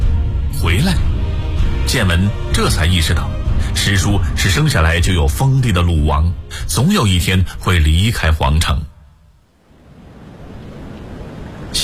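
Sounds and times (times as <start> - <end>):
speech: 0.6 - 1.1, 1.9 - 8.9
sea waves lapping against a ship: 9.5 - 11.8.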